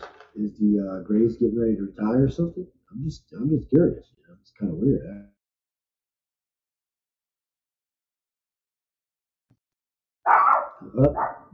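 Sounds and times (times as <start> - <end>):
speech: 0.4 - 5.3, 10.3 - 11.5
chihuahua barking: 10.3 - 11.5.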